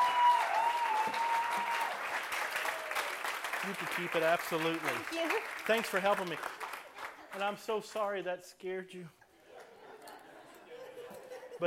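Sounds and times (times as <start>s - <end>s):
audience applause: 0.0s - 8.2s
speech: 3.6s - 6.6s, 7.3s - 9.2s
laughter: 9.3s - 11.6s.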